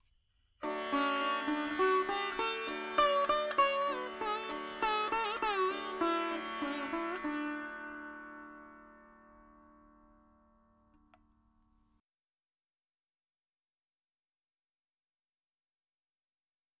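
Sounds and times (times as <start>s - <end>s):
dry veena melody: 0.6s - 11.2s.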